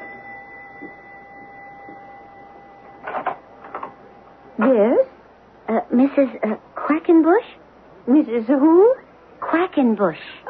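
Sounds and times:
doorbell ringing: 0.0s - 4.2s
speech: 4.6s - 5.0s, 6.0s - 10.4s.

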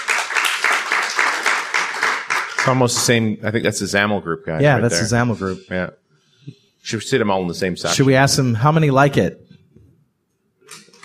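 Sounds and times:
audience clapping: 0.0s - 3.3s
speech: 2.6s - 9.4s.

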